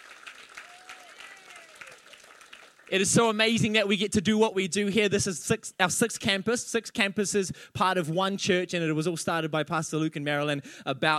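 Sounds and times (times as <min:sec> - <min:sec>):
church congregation clapping for its senior pastors: 0:00.0 - 0:03.4
speech: 0:02.9 - 0:11.1.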